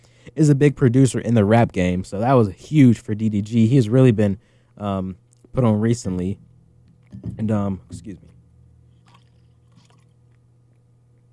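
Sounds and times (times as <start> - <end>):
speech: 0.3 - 6.5, 7.1 - 8.3
person taking a sip of a drink: 8.9 - 10.4.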